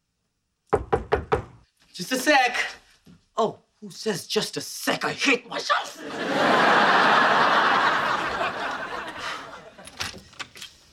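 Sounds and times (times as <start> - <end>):
nervous knocking on a front door: 0.7 - 1.6
speech: 2.0 - 2.8, 3.4 - 7.6
laughter: 5.8 - 9.9.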